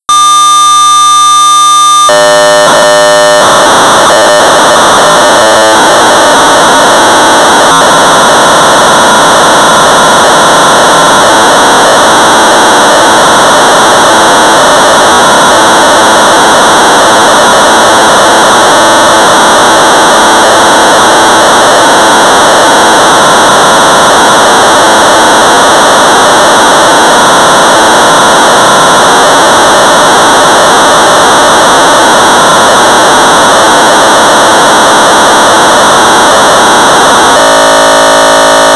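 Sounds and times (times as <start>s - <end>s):
1200 baud modem data tones: 0.1s - 38.7s.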